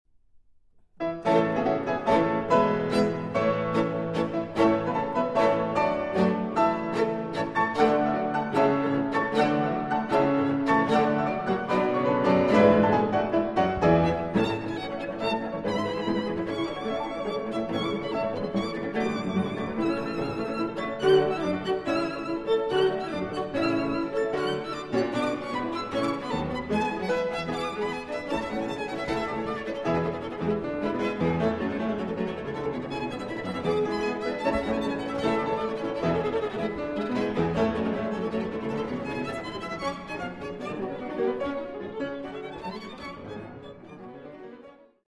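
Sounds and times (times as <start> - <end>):
piano trio in A minor: 1.0 - 44.5.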